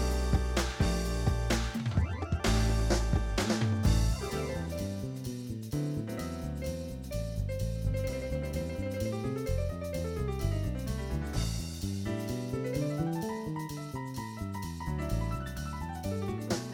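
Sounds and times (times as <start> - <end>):
Casio PX5S digital piano: 0.0 - 16.7.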